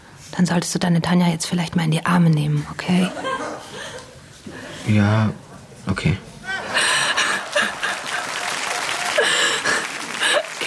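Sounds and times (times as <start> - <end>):
speech: 0.4 - 6.3
laughter: 2.9 - 4.8, 6.3 - 10.6
audience applause: 6.5 - 10.6.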